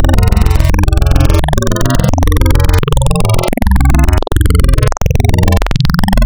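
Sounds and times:
spectral wavetable synth: 0:00.0 - 0:05.4.

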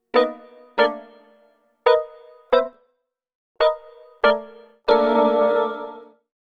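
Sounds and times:
drum and bass electric piano keys: 0:00.1 - 0:02.7, 0:03.6 - 0:06.0.

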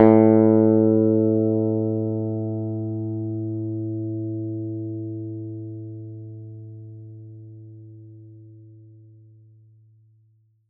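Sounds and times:
acoustic and electric guitar plucked at A2: 0:00.0 - 0:07.4.

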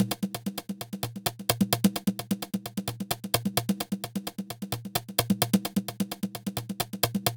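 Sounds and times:
big house congas: 0:00.0 - 0:07.3.

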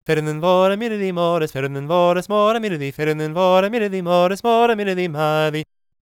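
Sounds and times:
Gaelic singing voices: 0:00.0 - 0:05.7.

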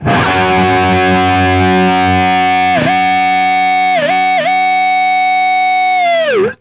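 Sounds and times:
guitar power chords in F sharp: 0:00.0 - 0:06.5.

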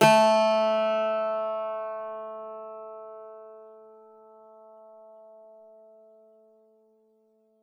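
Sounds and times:
bouzouki playing A3 note: 0:00.0 - 0:03.7.

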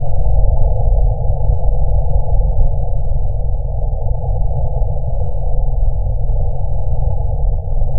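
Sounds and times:
ambient drone: 0:00.0 - 0:07.9.

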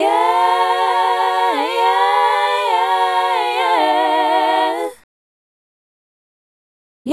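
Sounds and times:
female group hip-hop and RnB vocals: 0:00.0 - 0:05.0.

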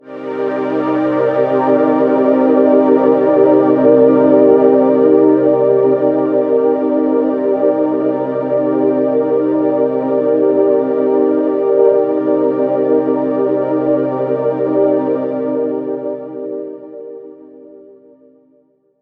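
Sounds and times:
synth pad C minor ninth chord: 0:00.1 - 0:17.1.

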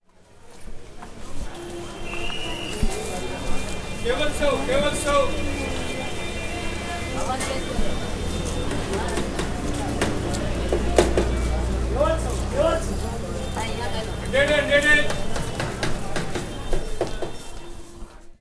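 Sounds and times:
Bombay ambience: 0:00.0 - 0:18.3.

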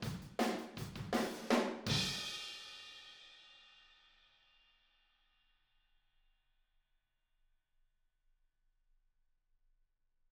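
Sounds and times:
drums: 0:00.0 - 0:03.7.

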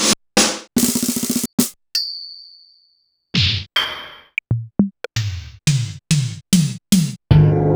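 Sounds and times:
Korg 01W synthesizer drum kit: 0:00.0 - 0:01.8, 0:03.4 - 0:07.6.

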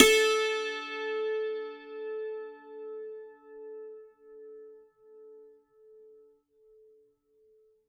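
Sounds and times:
dulcimer beat: 0:00.0 - 0:01.4.

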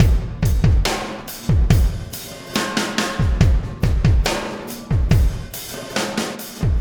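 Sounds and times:
processed drum kit beat: 0:00.0 - 0:06.7.

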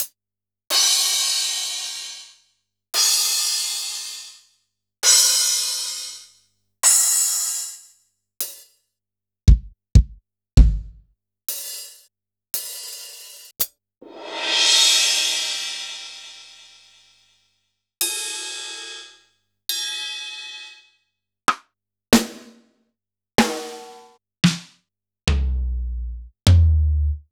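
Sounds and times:
Kurzweil drum kit: 0:00.7 - 0:02.2, 0:09.5 - 0:12.0, 0:12.6 - 0:17.0, 0:22.2 - 0:22.5, 0:23.4 - 0:27.2.

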